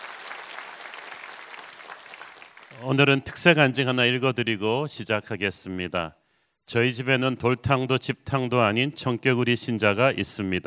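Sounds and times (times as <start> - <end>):
congregation applauding at a church gathering after a worship leader's singing: 0.0 - 3.2
speech: 2.8 - 10.6.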